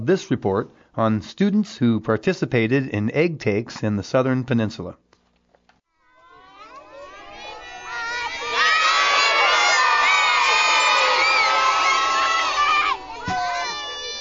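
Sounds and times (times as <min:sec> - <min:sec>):
speech: 0:00.0 - 0:05.0
students cheering as salmon eggs are fertilized: 0:06.0 - 0:14.2.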